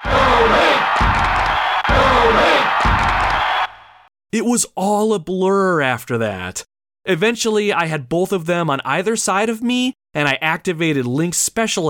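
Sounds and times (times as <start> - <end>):
crowd cheering: 0.0 - 4.1
speech: 4.3 - 11.8.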